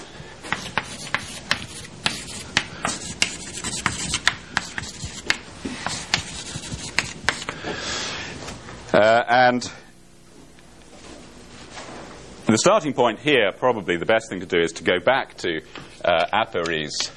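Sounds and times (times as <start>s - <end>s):
lecturer writing on a board during a mathematics lecture: 0.5s - 7.5s
speech: 9.0s - 9.8s, 12.5s - 17.1s.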